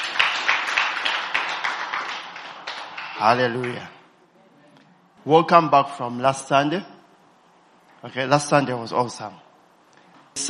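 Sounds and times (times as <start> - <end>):
audience clapping hands: 0.0 - 4.0
speech: 3.2 - 4.0, 5.2 - 7.0, 8.0 - 9.5.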